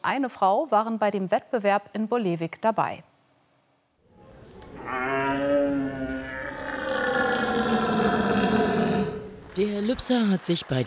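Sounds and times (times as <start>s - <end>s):
speech: 0.0s - 3.1s, 9.6s - 10.8s
man imitating a red deer stag's roar: 4.8s - 9.3s.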